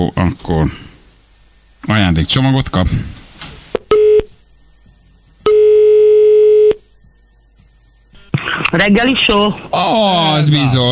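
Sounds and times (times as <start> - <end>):
speech: 0.0 - 0.9, 1.8 - 3.2, 8.7 - 10.8
telephone ringback tones as a Hungarian radio morning show calls a listener: 5.5 - 6.8.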